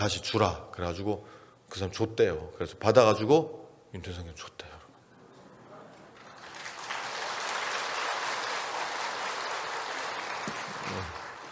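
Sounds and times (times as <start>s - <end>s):
speech: 0.0s - 4.8s
audience applause: 6.1s - 11.4s.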